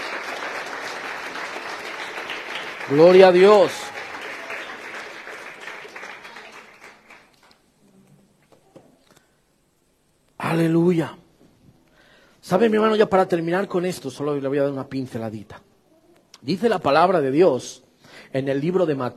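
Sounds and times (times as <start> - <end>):
audience applause: 0.0 - 7.7
speech: 2.9 - 3.8, 10.6 - 11.2, 12.5 - 15.6, 16.4 - 19.1.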